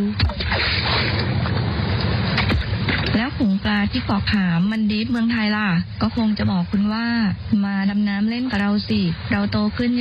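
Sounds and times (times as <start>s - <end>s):
ocean waves washing onto a white-sand beach in Thailand: 0.0s - 9.9s
speech: 3.9s - 9.9s.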